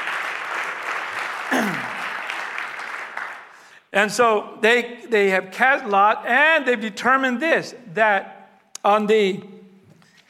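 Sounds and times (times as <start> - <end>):
audience clapping: 0.0 - 3.7
speech: 3.9 - 9.6.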